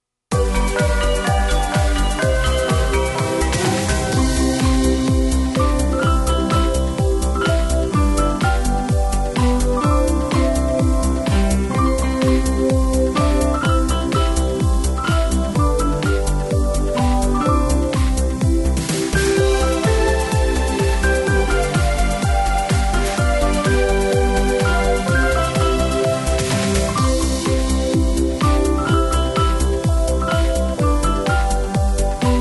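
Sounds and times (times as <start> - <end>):
square dance music: 0.3 - 32.4.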